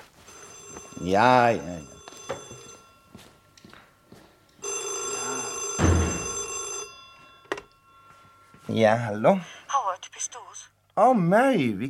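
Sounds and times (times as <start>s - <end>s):
telephone bell ringing: 0.2s - 3.5s, 4.6s - 10.0s
speech: 1.0s - 2.0s, 8.7s - 9.6s, 11.0s - 11.8s.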